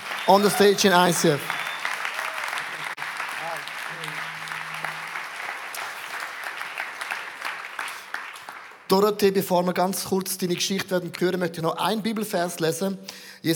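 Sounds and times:
audience applause: 0.0 - 8.9
speech: 0.3 - 1.6, 8.9 - 13.5.

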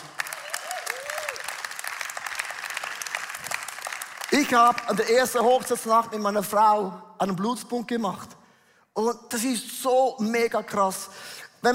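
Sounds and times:
loud audience applause: 0.0 - 5.0
speech: 4.4 - 8.4, 9.0 - 11.7.

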